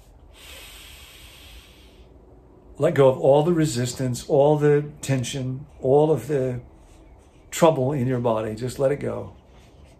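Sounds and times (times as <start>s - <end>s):
deep breath in during a guided relaxation: 0.3s - 2.2s
speech: 2.8s - 6.7s, 7.6s - 9.4s.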